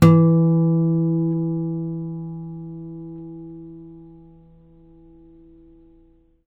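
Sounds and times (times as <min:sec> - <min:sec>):
steel guitar harmonic on E: 0:00.0 - 0:06.4.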